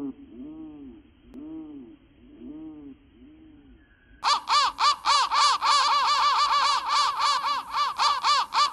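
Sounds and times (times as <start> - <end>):
crow cawing: 4.2 - 8.7.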